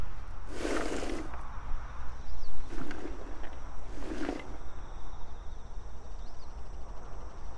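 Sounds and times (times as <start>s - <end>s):
insects calling: 0.1s - 7.5s
soil scraping rustles while planting garlic: 0.4s - 1.6s, 2.4s - 4.8s.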